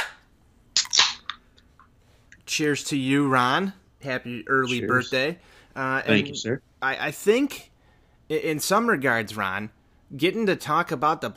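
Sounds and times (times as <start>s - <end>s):
drink cans cracking open with fizzing hisses: 0.8s - 1.4s
speech: 2.6s - 7.7s, 8.3s - 11.3s.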